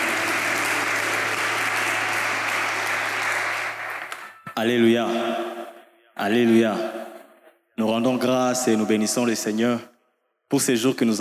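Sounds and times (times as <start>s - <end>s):
church congregation applauding for the Lord in a French-speaking worship service: 0.0s - 4.6s
speech: 4.6s - 5.4s, 6.2s - 7.0s, 7.8s - 9.9s, 10.5s - 11.1s.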